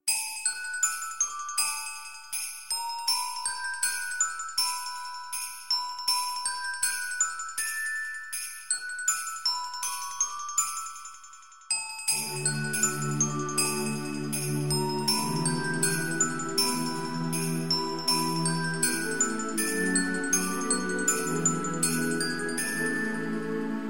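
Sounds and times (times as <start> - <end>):
Christmas song: 0.0 - 23.8.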